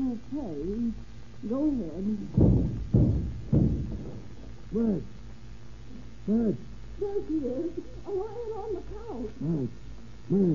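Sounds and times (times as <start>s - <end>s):
speech: 0.2s - 3.2s, 4.7s - 5.2s, 6.3s - 10.5s
door being broken in: 2.4s - 4.5s.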